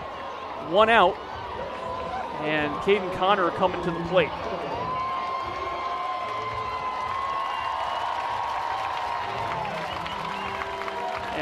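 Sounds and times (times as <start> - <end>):
ballpark crowd cheers and whoops from the stands: 0.0 - 3.1, 3.7 - 11.4
speech: 0.6 - 1.3, 2.4 - 4.8
large ballpark crowd clapping for the bat dog: 3.7 - 11.4.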